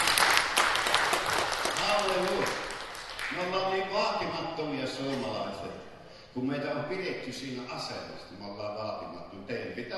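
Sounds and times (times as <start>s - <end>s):
congregation applauding at a church service: 0.0s - 3.8s
speech: 4.6s - 9.9s.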